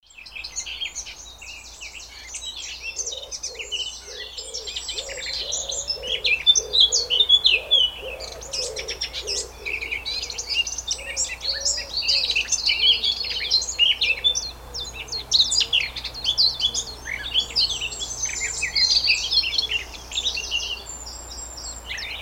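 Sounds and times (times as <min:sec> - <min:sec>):
birds: 0:00.0 - 0:22.2.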